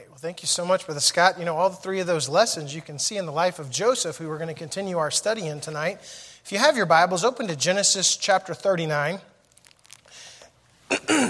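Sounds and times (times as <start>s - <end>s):
speech: 0.2s - 9.3s
breathy throat noises: 9.6s - 11.2s
speaker coughing in an auditorium: 10.9s - 11.2s.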